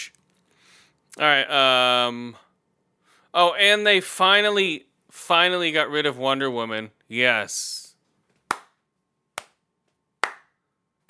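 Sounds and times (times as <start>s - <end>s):
speech: 1.2s - 2.5s, 3.3s - 7.8s
sharp loud hand claps: 8.4s - 8.8s, 9.4s - 9.6s, 10.2s - 11.0s.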